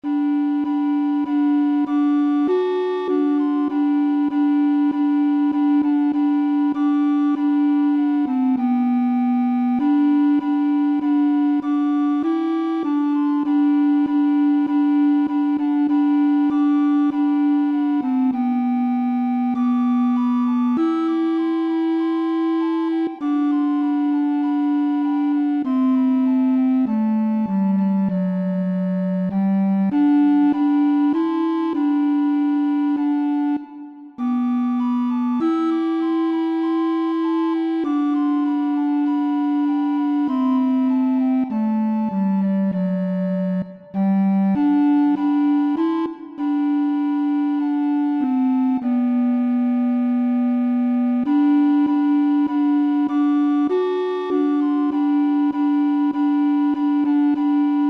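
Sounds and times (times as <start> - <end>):
flutes in three voices: 0.0 - 57.8.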